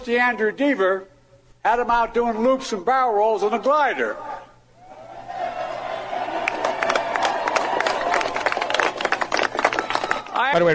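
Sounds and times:
speech: 0.0s - 4.3s, 10.4s - 10.7s
sparse clapping from a few people: 6.4s - 10.5s.

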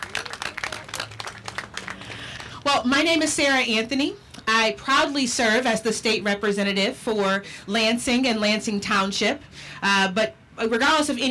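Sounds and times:
audience applause: 0.0s - 2.6s
speech: 2.7s - 11.2s.

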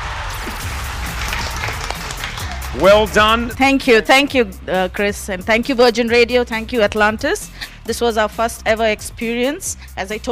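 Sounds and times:
crowd clapping at Atlantis The Palm: 0.0s - 3.5s
speech: 2.8s - 10.3s.

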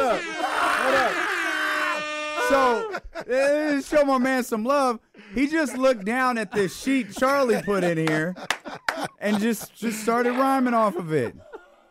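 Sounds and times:
air horn sound effects: 0.0s - 2.8s
laughter: 0.0s - 3.9s, 5.2s - 11.8s
speech: 2.5s - 11.5s.

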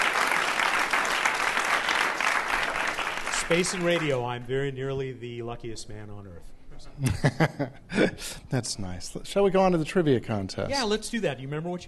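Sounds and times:
audience applause: 0.0s - 4.4s
speech: 3.5s - 11.8s
laughter: 7.0s - 8.3s.

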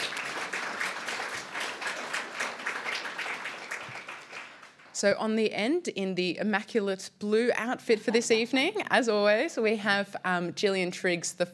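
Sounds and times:
audience applause: 0.0s - 4.9s
speech: 5.0s - 11.5s.

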